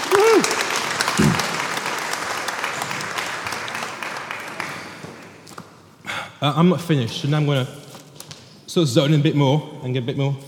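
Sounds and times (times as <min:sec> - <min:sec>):
audience applause for children: 0:00.0 - 0:05.2
speech: 0:06.4 - 0:07.8, 0:08.7 - 0:10.4.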